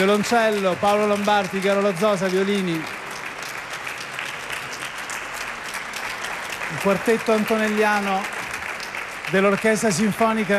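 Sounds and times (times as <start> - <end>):
speech: 0.0 - 3.0, 6.8 - 8.4, 9.3 - 10.5
audience applause for a string quartet: 0.0 - 10.5.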